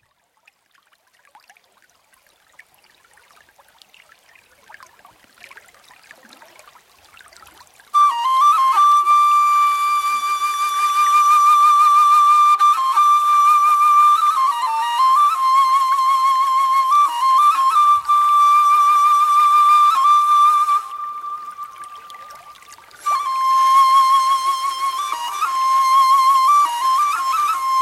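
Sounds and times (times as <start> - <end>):
ney flute solo: 7.8 - 27.8.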